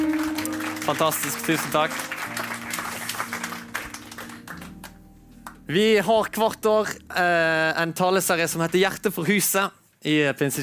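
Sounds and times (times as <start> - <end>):
crowd applauding: 0.0 - 5.6
speech: 0.9 - 2.4, 5.7 - 10.6.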